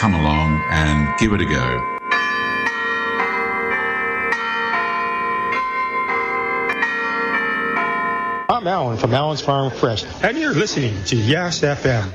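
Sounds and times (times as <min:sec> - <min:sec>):
speech: 0:00.0 - 0:02.0, 0:08.6 - 0:12.1
church bells pealing: 0:00.0 - 0:09.0.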